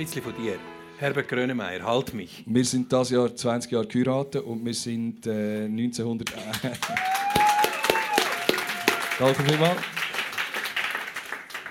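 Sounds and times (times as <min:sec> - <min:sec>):
speech: 0:00.0 - 0:07.4, 0:09.2 - 0:10.0
audience applauding and clapping: 0:06.3 - 0:11.6
laughter: 0:06.4 - 0:07.1.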